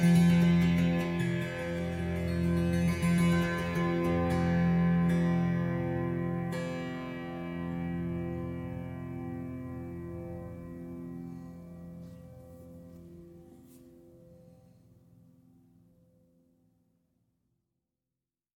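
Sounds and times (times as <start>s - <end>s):
monochord therapy sequence: 0.0s - 13.8s.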